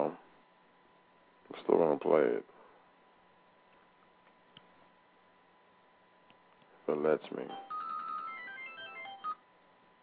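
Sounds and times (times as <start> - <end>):
speech: 1.6 - 2.6, 7.0 - 7.7
phone ringtone: 7.5 - 9.4.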